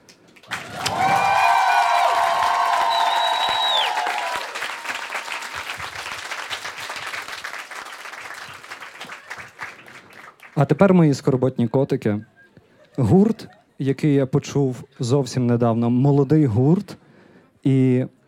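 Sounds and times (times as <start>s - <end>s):
large audience applause in a hall: 0.4s - 10.7s
cheering: 0.5s - 9.6s
brief whistle: 2.9s - 4.1s
speech: 10.6s - 12.4s, 13.0s - 17.0s, 17.6s - 18.2s.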